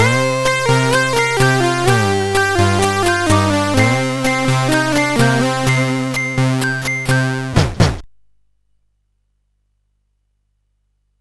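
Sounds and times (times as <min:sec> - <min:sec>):
SID chip music samples: 0:00.0 - 0:08.0.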